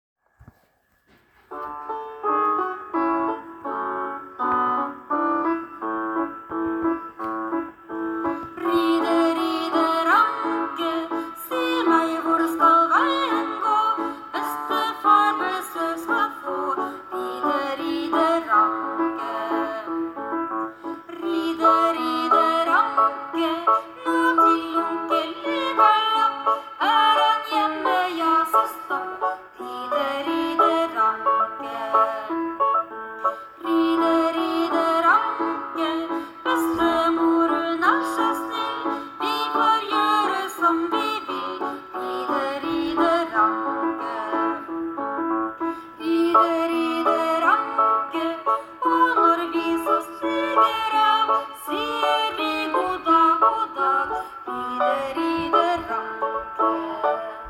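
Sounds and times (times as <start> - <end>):
children's song: 0.5 - 57.4.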